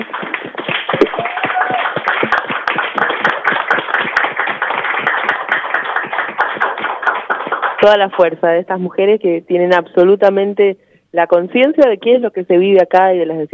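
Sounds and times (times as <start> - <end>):
applause: 0.0 - 8.3
speech: 7.8 - 13.5.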